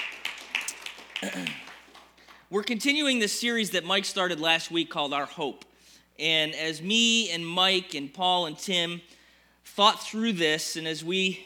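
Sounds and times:
audience clapping: 0.0 - 2.5
speech: 1.2 - 1.7, 2.5 - 9.2, 9.8 - 11.4.

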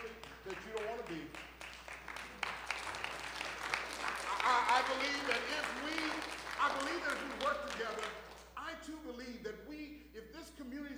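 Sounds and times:
audience clapping: 0.0 - 8.6
speech: 1.1 - 1.5, 4.9 - 10.9.

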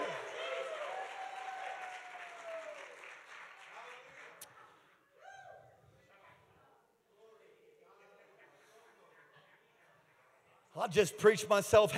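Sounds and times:
loud whoops and cheering voices: 0.0 - 3.0, 5.2 - 5.8
crowd clapping steadily: 0.0 - 4.6
speech: 10.8 - 11.9.

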